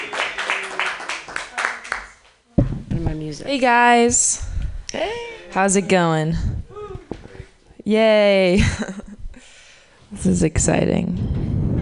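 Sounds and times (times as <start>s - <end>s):
open mic comedy audience applause: 0.0s - 2.1s
speech: 3.0s - 6.5s, 7.9s - 9.0s, 10.2s - 11.2s.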